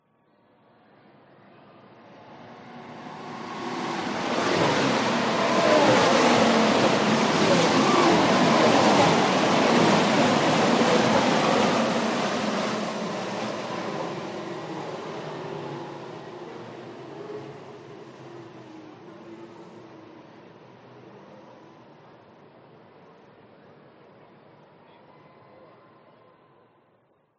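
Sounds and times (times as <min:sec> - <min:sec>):
F1 race car passing at speed on race track: 0:02.5 - 0:16.3.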